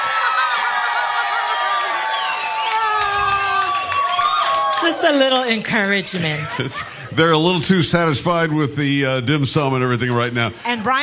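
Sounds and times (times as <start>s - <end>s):
crowd cheering wildly at Jade Dynasty: 0.0s - 7.3s
speech: 4.8s - 11.0s
laughter: 6.0s - 8.2s.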